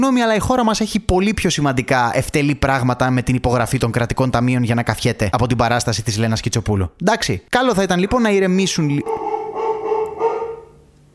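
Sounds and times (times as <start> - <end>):
speech: 0.0 - 9.3
dog barking inside: 9.0 - 11.1.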